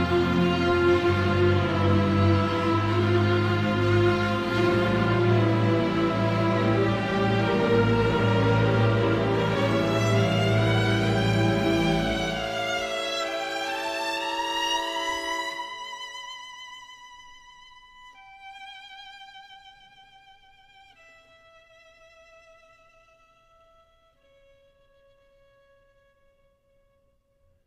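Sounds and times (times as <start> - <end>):
orchestra playing: 0.0 - 16.2
solo violin: 0.0 - 27.1.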